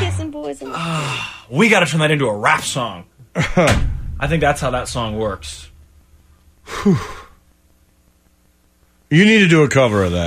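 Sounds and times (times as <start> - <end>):
speech: 0.4 - 5.7, 6.7 - 7.2, 9.1 - 10.2
person wheezing: 6.6 - 7.4.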